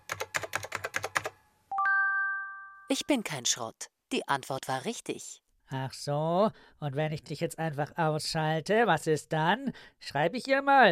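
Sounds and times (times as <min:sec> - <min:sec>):
typing on a computer keyboard: 0:00.0 - 0:01.4
electronic tone rising into a chime: 0:01.7 - 0:02.9
speech: 0:02.9 - 0:10.9.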